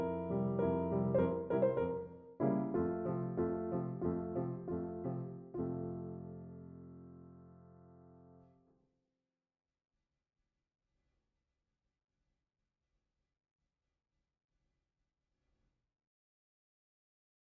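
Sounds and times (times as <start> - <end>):
Pianoteq piano piece in F minor: 0.0 - 8.6.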